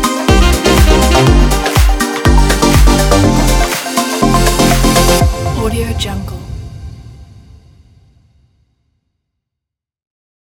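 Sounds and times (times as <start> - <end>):
deep house music: 0.0 - 6.7.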